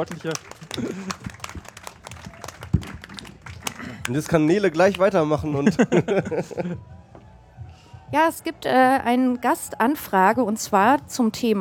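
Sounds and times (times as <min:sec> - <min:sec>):
speech: 0:00.0 - 0:01.4, 0:04.1 - 0:07.0, 0:08.1 - 0:11.6
laughter: 0:00.0 - 0:01.6, 0:05.2 - 0:07.0
audience applause: 0:00.0 - 0:05.2.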